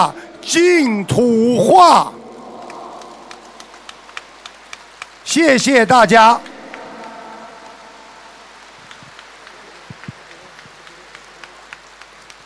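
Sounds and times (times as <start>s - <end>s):
speech: 0.0s - 2.2s, 5.3s - 6.5s
warm audience applause: 0.0s - 12.4s.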